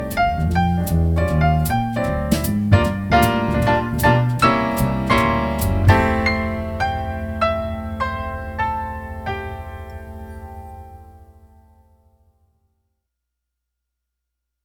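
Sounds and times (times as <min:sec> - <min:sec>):
blues music: 0:00.0 - 0:11.6.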